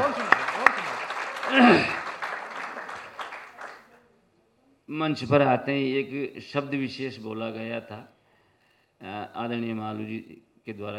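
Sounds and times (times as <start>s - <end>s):
audience applause: 0.0s - 3.9s
speech: 5.0s - 8.2s, 9.0s - 10.9s.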